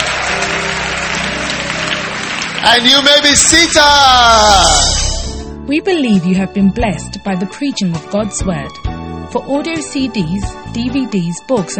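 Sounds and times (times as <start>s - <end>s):
church congregation clapping as an offering to the Lord: 0.0s - 5.1s
speech: 2.6s - 5.0s, 5.7s - 11.7s.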